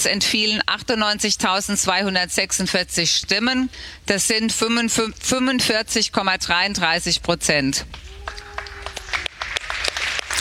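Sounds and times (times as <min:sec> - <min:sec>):
speech: 0:00.0 - 0:08.4
applause following an SPD leadership vote result: 0:07.9 - 0:10.3.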